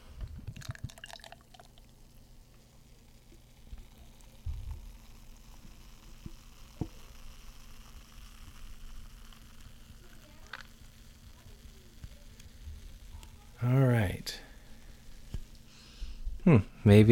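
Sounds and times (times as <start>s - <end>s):
drink being poured, fizzing: 0.0s - 12.8s
speech: 16.5s - 17.1s.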